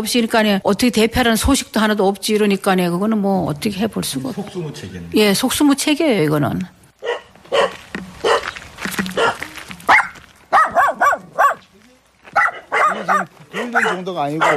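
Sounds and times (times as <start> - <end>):
speech: 0.0 - 6.8, 7.5 - 8.1, 13.0 - 14.5
dogs barking: 7.0 - 11.7, 12.3 - 14.5.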